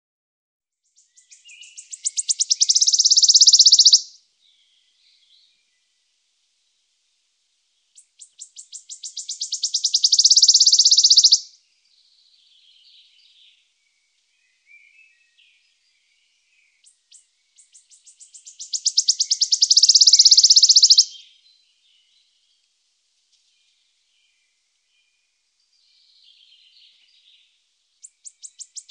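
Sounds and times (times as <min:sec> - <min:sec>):
wood warbler piping calls: 0:00.8 - 0:05.7, 0:08.0 - 0:11.6, 0:14.4 - 0:22.2, 0:25.8 - 0:28.8.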